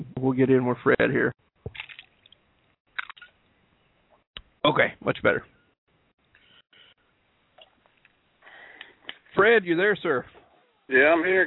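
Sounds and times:
speech: 0:00.0 - 0:01.9, 0:04.6 - 0:05.5, 0:09.4 - 0:11.4
person gulping a low-cal Gatorade: 0:03.0 - 0:03.3.

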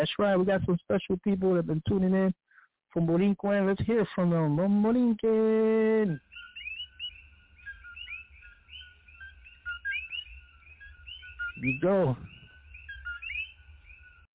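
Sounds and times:
speech: 0:00.0 - 0:06.3, 0:11.6 - 0:12.4
coquí tree frog calling: 0:04.9 - 0:14.3.

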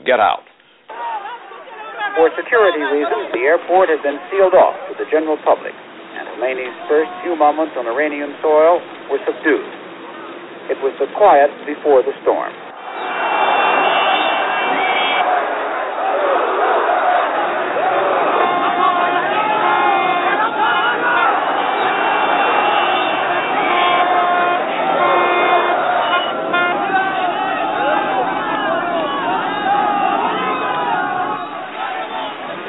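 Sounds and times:
speech: 0:00.1 - 0:00.5, 0:02.1 - 0:05.8, 0:06.4 - 0:09.8, 0:10.7 - 0:13.1
crowd roaring and shouting around motorcade: 0:00.9 - 0:04.9, 0:12.7 - 0:32.6
car horns honking: 0:01.3 - 0:09.6, 0:10.3 - 0:15.7, 0:16.6 - 0:32.6.

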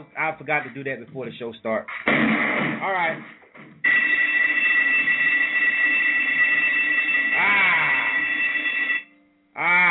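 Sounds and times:
speech: 0:00.0 - 0:03.7, 0:09.6 - 0:09.8
electric bell ringing: 0:03.8 - 0:09.2.

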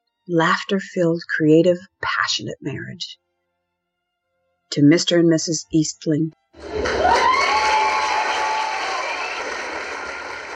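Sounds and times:
speech: 0:00.3 - 0:03.2, 0:04.7 - 0:07.3
crowd cheering in reception hall: 0:06.6 - 0:10.5.

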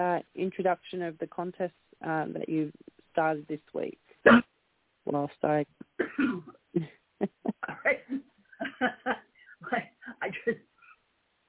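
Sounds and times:
speech: 0:00.0 - 0:08.2
person coughing after aspirating water: 0:04.3 - 0:04.5, 0:06.0 - 0:09.2.

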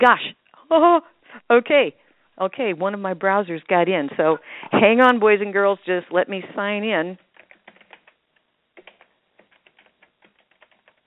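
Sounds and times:
speech: 0:00.0 - 0:07.2
fast typing on a computer keyboard: 0:07.2 - 0:08.2, 0:08.8 - 0:11.0.

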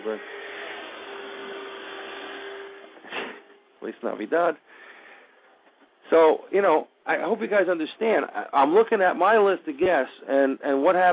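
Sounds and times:
vacuum cleaner running: 0:00.0 - 0:03.4
speech: 0:03.9 - 0:04.9, 0:06.1 - 0:11.1.

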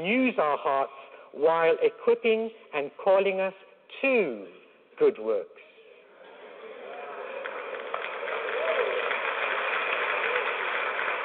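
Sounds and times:
speech: 0:00.0 - 0:05.7
audience applauding: 0:06.7 - 0:11.2.

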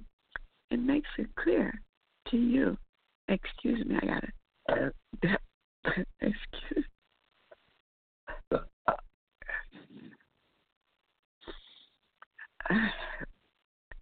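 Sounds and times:
speech: 0:00.7 - 0:07.0, 0:08.5 - 0:09.0, 0:12.7 - 0:13.1
person belching: 0:08.3 - 0:09.0.

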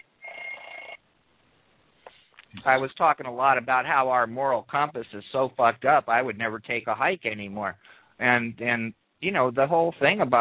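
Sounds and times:
telephone ringing: 0:00.0 - 0:01.0
speech: 0:02.6 - 0:10.4.

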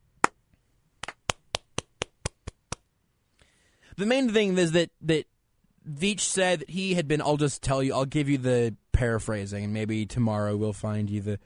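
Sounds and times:
hand clapping: 0:01.0 - 0:02.9
speech: 0:04.0 - 0:11.4.

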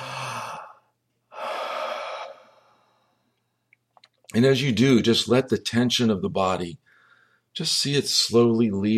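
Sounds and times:
deep breaths during a relaxation exercise: 0:00.0 - 0:03.7, 0:06.8 - 0:07.6
speech: 0:04.3 - 0:06.8, 0:07.6 - 0:08.9.

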